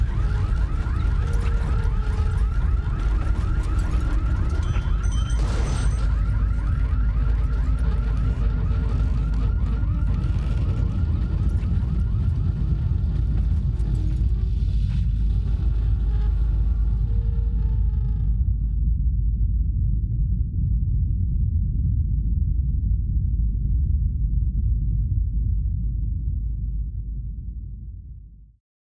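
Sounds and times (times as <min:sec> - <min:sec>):
earthquake sound effect: 0:00.0 - 0:28.0.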